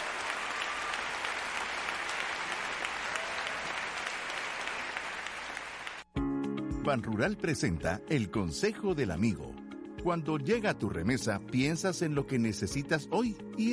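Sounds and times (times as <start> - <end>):
church audience applauding: 0.0 - 6.1
speech: 6.8 - 13.7.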